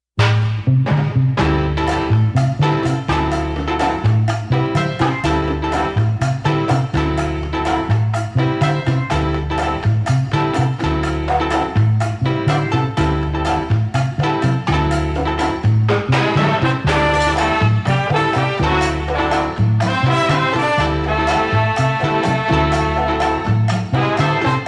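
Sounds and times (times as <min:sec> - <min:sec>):
boogaloo music: 0:00.2 - 0:24.6.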